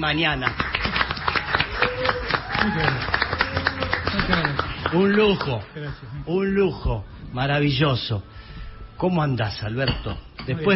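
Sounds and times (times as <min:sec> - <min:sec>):
speech: 0:00.0 - 0:00.7, 0:02.0 - 0:03.2, 0:04.1 - 0:08.4, 0:09.0 - 0:10.7
studio audience clapping loudly: 0:00.0 - 0:06.0.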